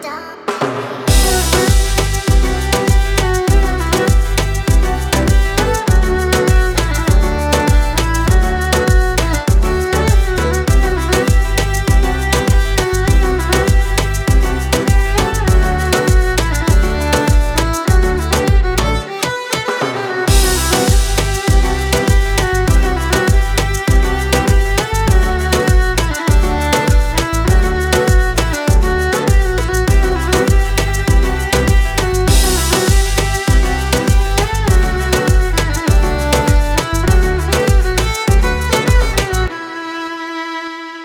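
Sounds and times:
Turkish violin accompaniment: 0.7 - 41.0.

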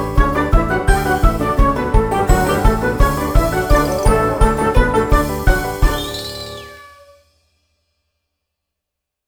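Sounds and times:
cheerful entertainment music: 0.0 - 6.9.

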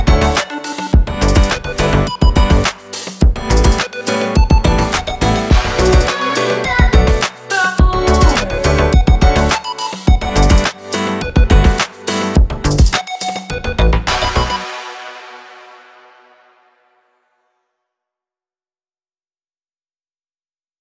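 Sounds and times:
R&B hip-hop music: 0.0 - 16.2.

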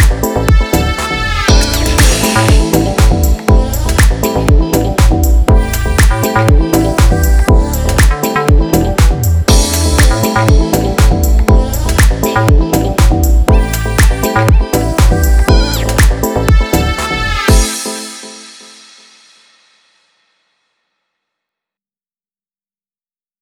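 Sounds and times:
deep house funk music: 0.0 - 18.1.

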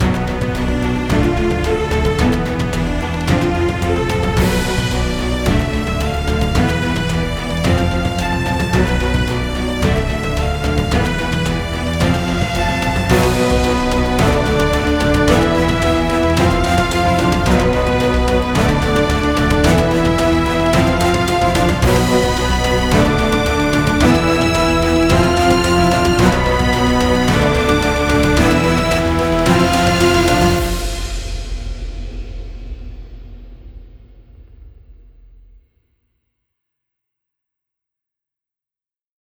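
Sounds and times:
cinematic music: 0.0 - 33.8.

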